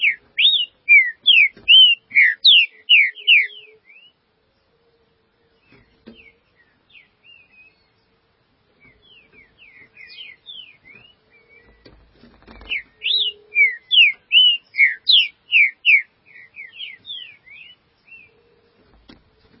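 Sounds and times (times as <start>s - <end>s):
green-winged saltator song of slurred whistles: 0.0s - 4.2s, 5.6s - 8.0s, 8.8s - 11.9s, 12.6s - 18.4s.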